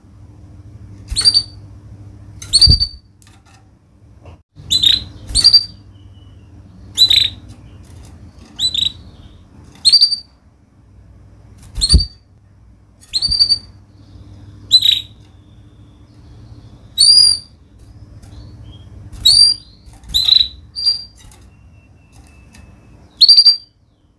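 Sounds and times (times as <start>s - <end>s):
faint low hum: 0.0s - 24.1s
canary chirping: 1.1s - 1.7s, 2.4s - 3.1s, 4.6s - 10.4s, 11.6s - 12.3s, 13.0s - 24.1s.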